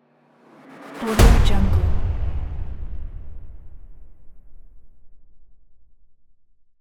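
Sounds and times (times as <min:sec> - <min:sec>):
cinematic hit: 0:00.7 - 0:05.1.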